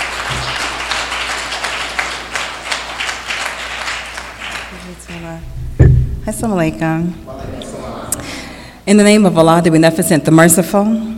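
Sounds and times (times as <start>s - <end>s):
audience applause: 0.0s - 5.4s
speech: 5.2s - 5.6s, 6.3s - 7.3s, 8.8s - 11.1s.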